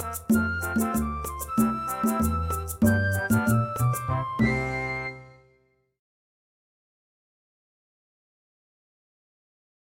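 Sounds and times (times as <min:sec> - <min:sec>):
instrumental music without vocals: 0:00.0 - 0:05.8.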